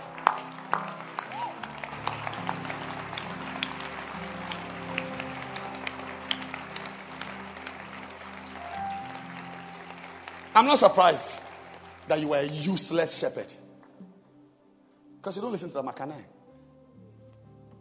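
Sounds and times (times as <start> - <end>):
audience clapping: 0.0 - 14.0
speech: 10.6 - 11.4, 12.1 - 13.6, 15.2 - 16.4.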